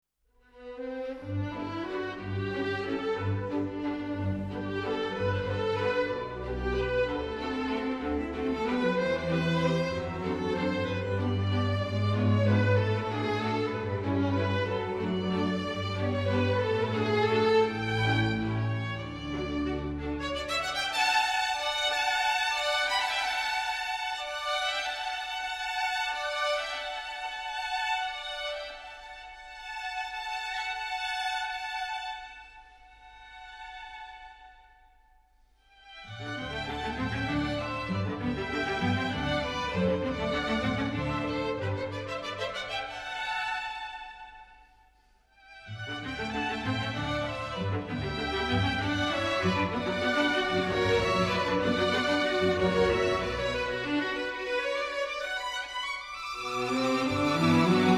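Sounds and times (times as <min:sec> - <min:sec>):
string orchestra serenade: 0:00.5 - 0:34.8, 0:35.7 - 0:44.8, 0:45.4 - 0:57.9.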